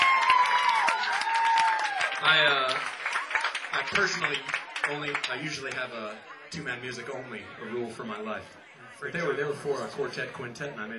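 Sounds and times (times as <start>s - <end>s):
audience applause at a live band show: 0.0s - 5.9s
speech: 2.2s - 3.0s, 3.7s - 10.9s.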